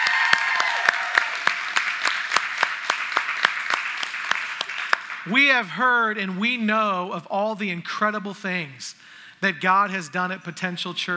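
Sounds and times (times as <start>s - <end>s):
audience applause welcoming visiting church members: 0.0s - 5.3s
speech: 5.2s - 11.1s.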